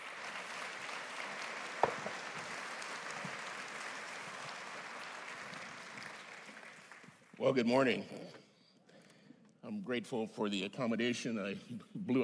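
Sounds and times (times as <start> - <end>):
church congregation applause welcoming a guest speaker at a Sunday service: 0.0 - 8.0
speech: 7.4 - 8.4, 9.9 - 12.2.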